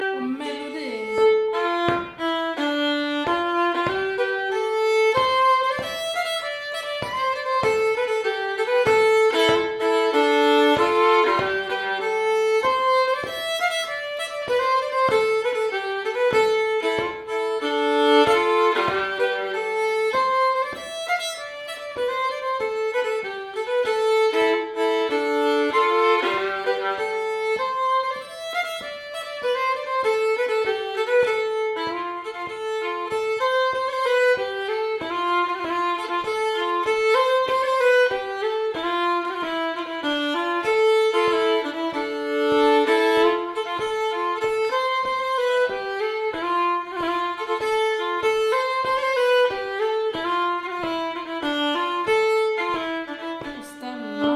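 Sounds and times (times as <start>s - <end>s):
slängpolska folk dance tune: 0.0s - 54.3s.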